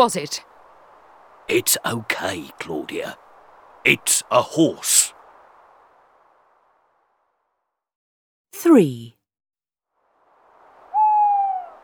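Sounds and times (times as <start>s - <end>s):
speech: 0.0s - 0.5s, 1.5s - 3.2s, 3.8s - 5.2s, 8.6s - 9.2s
owl hooting: 10.8s - 11.8s.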